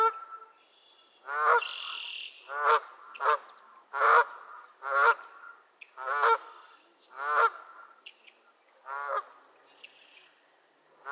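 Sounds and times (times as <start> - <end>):
geese honking: 1.2 - 8.0, 8.8 - 9.4.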